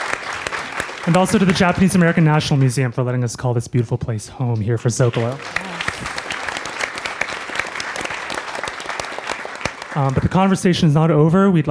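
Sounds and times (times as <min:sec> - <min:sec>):
audience applause: 0:00.0 - 0:02.9, 0:05.0 - 0:10.8
speech: 0:01.0 - 0:06.2, 0:10.0 - 0:11.6.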